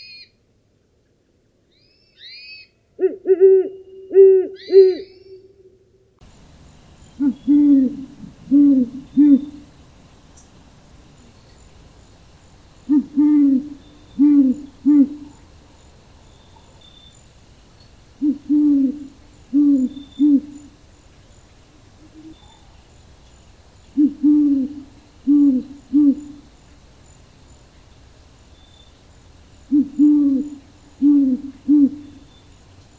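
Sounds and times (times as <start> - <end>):
Great Horned Owl hooting: 1.7 - 5.7, 7.1 - 9.7, 12.8 - 15.4, 18.2 - 20.8, 23.9 - 26.5, 29.6 - 32.5.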